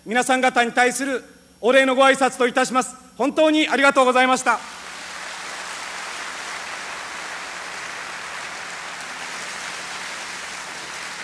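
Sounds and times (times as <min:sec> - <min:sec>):
speech: 0:00.1 - 0:04.8
applause: 0:04.7 - 0:11.2.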